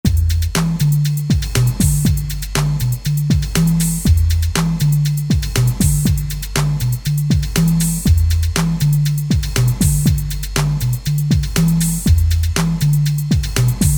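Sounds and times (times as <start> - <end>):
funk music: 0.0 - 13.9.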